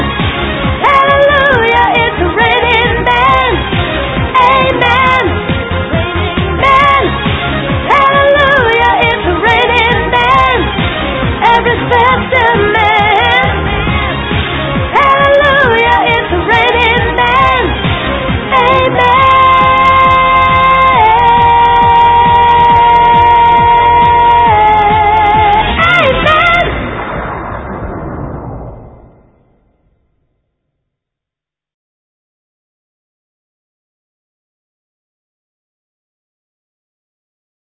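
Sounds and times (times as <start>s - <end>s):
soprano singing: 0.8s - 14.3s, 14.9s - 26.8s.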